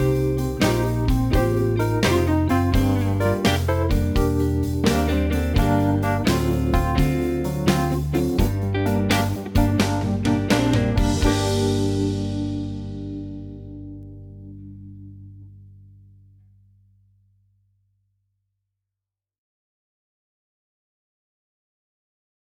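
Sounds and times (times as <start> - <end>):
blues music: 0.0 - 15.7.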